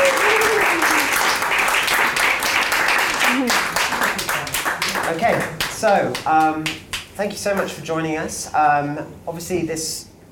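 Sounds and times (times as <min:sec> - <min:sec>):
audience round of applause: 0:00.0 - 0:06.5
speech: 0:05.8 - 0:10.3.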